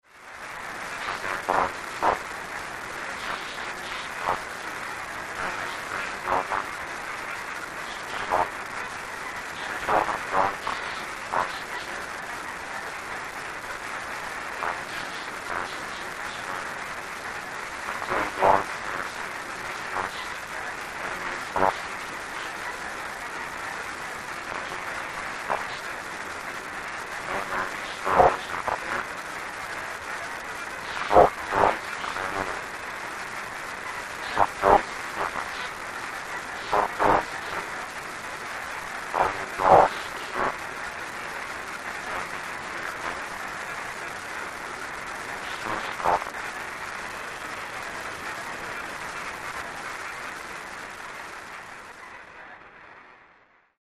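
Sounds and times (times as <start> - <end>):
communications static: 0.0 - 53.7.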